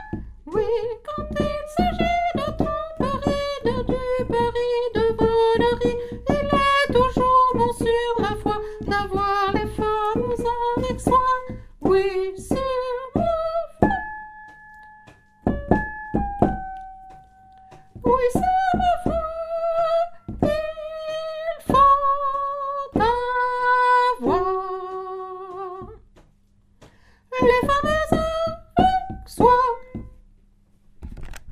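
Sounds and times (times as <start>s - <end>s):
soprano singing: 0.0s - 14.1s, 18.0s - 26.0s, 27.3s - 30.1s.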